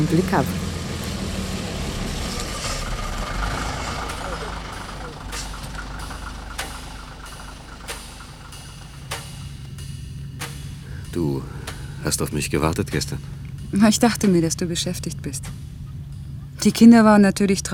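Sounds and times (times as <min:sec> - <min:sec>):
speech: 0:00.0 - 0:00.7, 0:11.2 - 0:15.7, 0:16.6 - 0:17.7
bus engine idling: 0:00.0 - 0:17.7.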